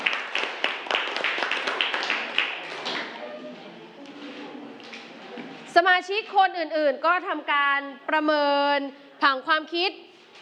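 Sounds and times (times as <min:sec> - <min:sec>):
classroom applause: 0:00.0 - 0:03.2
speech: 0:05.8 - 0:10.1.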